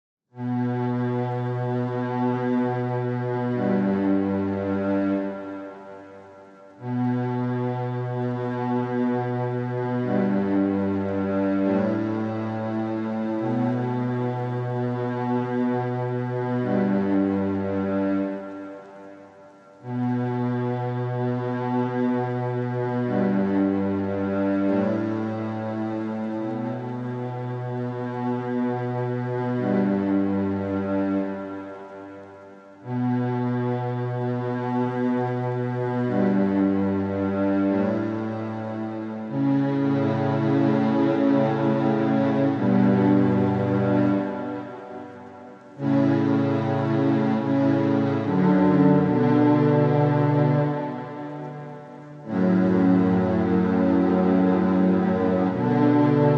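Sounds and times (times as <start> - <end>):
cellos: 0.3 - 56.3.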